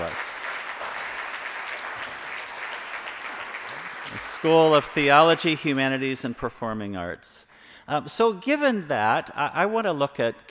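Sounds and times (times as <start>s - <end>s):
audience applause: 0.0s - 5.7s
speech: 4.4s - 10.4s.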